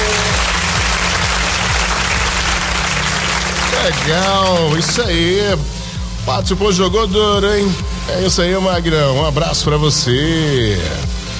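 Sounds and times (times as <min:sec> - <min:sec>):
audience clapping: 0:00.0 - 0:05.7
low hum: 0:00.0 - 0:11.3
speech: 0:03.9 - 0:11.1.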